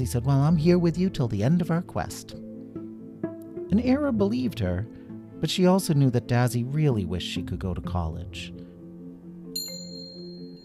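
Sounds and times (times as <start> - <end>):
speech: 0.0 - 2.5, 3.7 - 8.6
bell ringing: 9.6 - 10.6.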